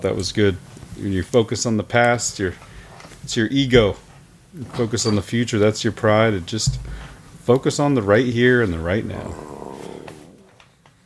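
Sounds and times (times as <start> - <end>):
speech: 0.0 - 9.5
stomach growling: 9.0 - 10.7.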